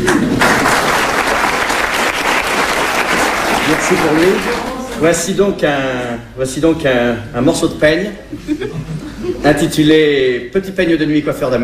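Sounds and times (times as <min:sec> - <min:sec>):
audience applause: 0:00.1 - 0:04.9
speech: 0:03.9 - 0:11.6
laughter: 0:08.3 - 0:09.6.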